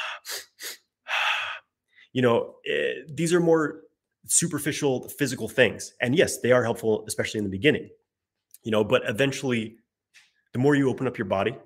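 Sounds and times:
sniffing inhales and exhale: 0.0s - 1.7s
speech: 2.1s - 8.0s, 8.6s - 11.6s.

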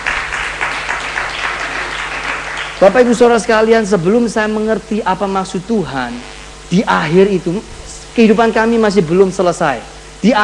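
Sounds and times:
audience applause: 0.0s - 3.0s
speech: 2.8s - 10.4s.

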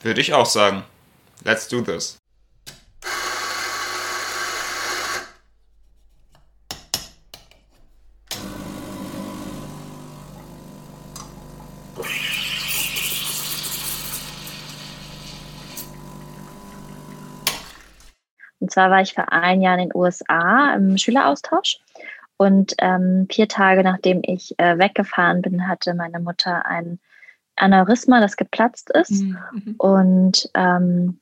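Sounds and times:
speech: 0.0s - 2.8s, 18.8s - 31.2s
coffee machine pump humming with hiss: 3.0s - 5.2s, 8.3s - 18.2s
coffee machine grinding whir: 3.0s - 5.4s, 8.3s - 18.2s.

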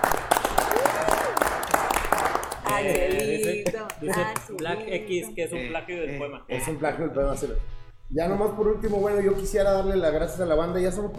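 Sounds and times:
applause: 0.0s - 4.8s
speech: 2.8s - 11.1s.

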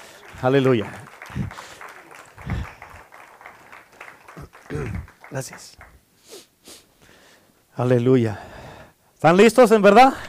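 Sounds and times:
voices calling out: 0.0s - 5.9s
audience applauding: 0.0s - 6.0s
speech: 0.4s - 1.4s, 5.3s - 5.8s, 7.8s - 8.5s, 9.2s - 10.2s.

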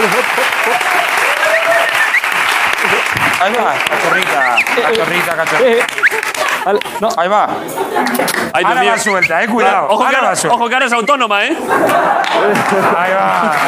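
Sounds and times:
audience applause: 0.0s - 7.1s, 11.8s - 13.6s
laughter: 0.0s - 13.6s
speech: 3.4s - 13.6s.

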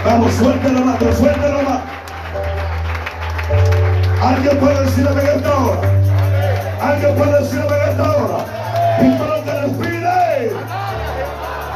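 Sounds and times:
audience applauding loudly: 0.0s - 11.7s
speech: 0.3s - 1.4s, 4.2s - 11.0s.

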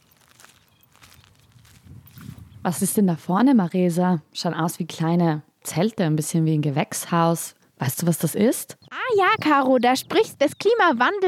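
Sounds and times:
footsteps walking across a salt marsh: 0.0s - 2.5s
speech: 2.6s - 11.2s.

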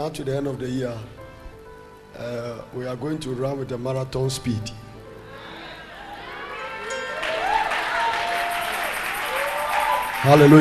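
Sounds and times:
speech: 0.0s - 1.2s, 2.2s - 4.8s, 10.2s - 10.5s
people cheering: 5.3s - 10.5s
church congregation clapping: 6.9s - 10.5s.

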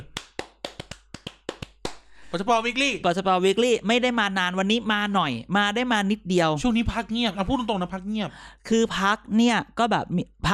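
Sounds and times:
hands clapping: 0.0s - 2.2s
speech: 2.3s - 10.5s.

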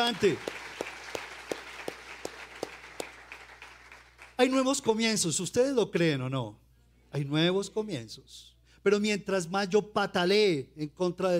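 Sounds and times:
speech: 0.0s - 0.6s, 4.4s - 11.3s
audience applause: 0.0s - 4.4s.

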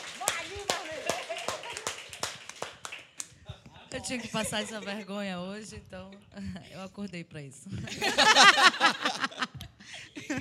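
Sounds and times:
audience clapping: 0.0s - 3.4s
laughter: 0.6s - 2.0s, 3.5s - 5.1s, 7.9s - 10.3s
speech: 4.0s - 10.3s.

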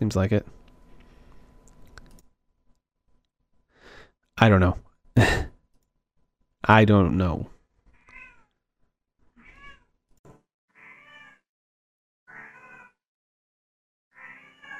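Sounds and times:
speech: 0.0s - 0.6s, 4.4s - 5.4s, 6.7s - 7.5s
cat meowing: 8.0s - 8.5s, 9.4s - 9.8s, 10.8s - 11.4s, 12.3s - 13.0s, 14.2s - 14.7s.

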